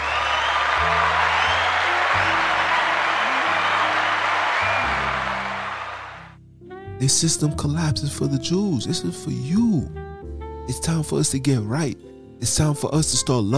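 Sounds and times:
audience applause: 0.0 - 6.4
speech: 7.0 - 10.0, 10.7 - 13.5.

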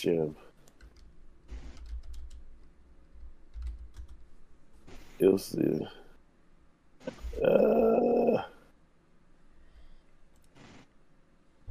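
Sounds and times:
speech: 0.0 - 0.5, 5.2 - 6.0, 7.1 - 8.1
low steady hum: 0.0 - 11.6
typing on a computer keyboard: 1.7 - 2.4, 3.5 - 4.2.

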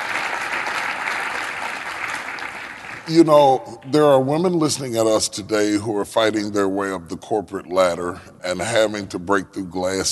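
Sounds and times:
audience applause: 0.0 - 3.3
speech: 3.1 - 10.0.

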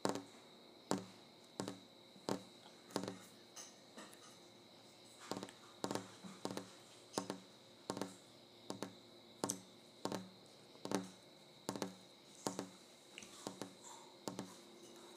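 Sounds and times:
fingers tapping on a kitchen counter: 0.0 - 0.3, 0.9 - 3.3, 5.2 - 12.8, 13.4 - 14.6.

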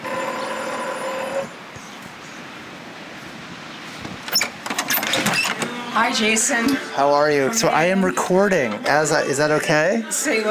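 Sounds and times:
door buzzer ringing: 0.0 - 6.2
speech: 6.0 - 10.4.

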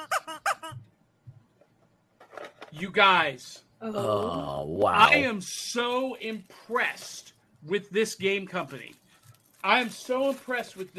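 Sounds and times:
rubber chicken toy squeaking: 0.0 - 0.8
speech: 2.8 - 9.0, 9.6 - 10.9.

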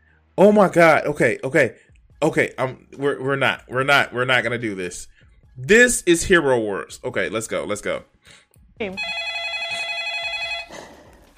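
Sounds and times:
speech: 0.4 - 9.3
telephone ringing with electronic ring: 8.9 - 10.7.

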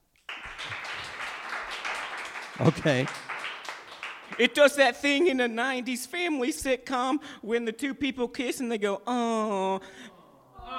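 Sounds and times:
clapping sound effect of many hands: 0.0 - 4.9
speech: 2.6 - 3.3, 4.4 - 10.1.

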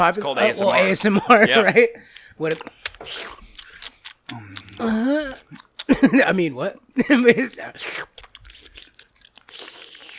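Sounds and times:
laughter: 0.0 - 2.0
speech: 0.0 - 3.4, 4.3 - 8.2
crunchy mouth clicks: 2.1 - 6.0, 7.5 - 10.1
person eating pho with wet chewing: 2.1 - 6.0, 7.5 - 10.1.

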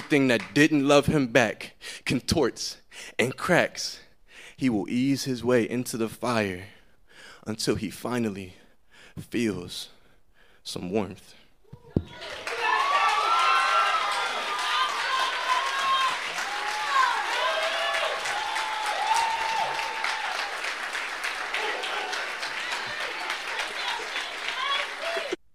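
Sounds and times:
speech: 0.1 - 4.0, 4.6 - 6.8, 7.4 - 8.6, 9.2 - 10.0, 10.6 - 11.4
audience applause: 12.1 - 25.4.

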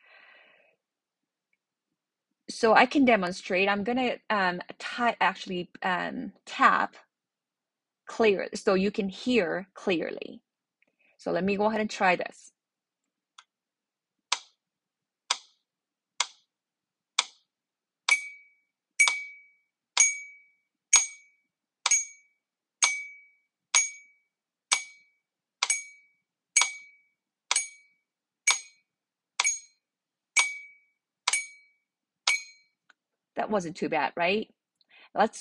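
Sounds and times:
speech: 2.5 - 7.0, 8.1 - 10.4, 11.2 - 12.6, 33.5 - 35.3
metronome ticking: 15.3 - 15.6, 16.2 - 16.4, 17.2 - 17.4, 18.1 - 19.4, 20.0 - 22.2, 22.8 - 24.0, 24.7 - 25.0, 25.6 - 26.0, 26.6 - 26.9, 27.5 - 27.9, 28.5 - 28.8, 29.4 - 29.8, 30.4 - 31.7, 32.3 - 32.6.

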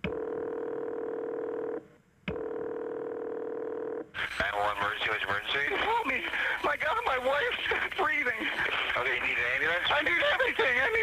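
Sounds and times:
buzzing telephone tone as a call is placed: 0.1 - 5.0
laughter: 4.5 - 11.0.

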